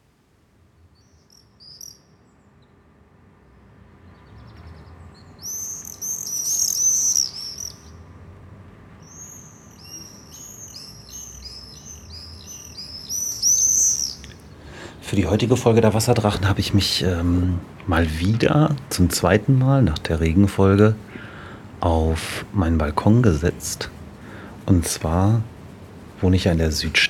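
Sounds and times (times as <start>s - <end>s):
common swifts giving shrill screaming calls: 1.0s - 2.1s, 4.4s - 8.1s, 9.0s - 27.0s
speech: 15.1s - 21.2s, 21.8s - 24.0s, 24.7s - 25.5s, 26.2s - 27.0s.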